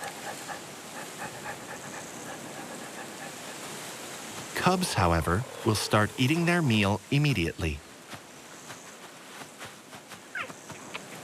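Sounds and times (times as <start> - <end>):
cheetah panting after a chase: 0.0 - 7.0
steady hiss: 0.0 - 9.8
speech: 4.6 - 7.8.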